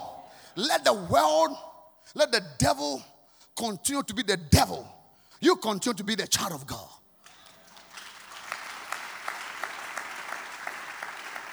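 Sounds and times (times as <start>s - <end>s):
speech: 0.6s - 7.0s
audience clapping: 7.4s - 11.5s.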